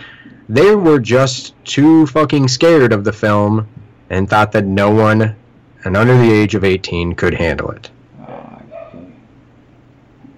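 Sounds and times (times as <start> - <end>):
speech: 0.5 - 8.0
dog barking: 8.2 - 9.2.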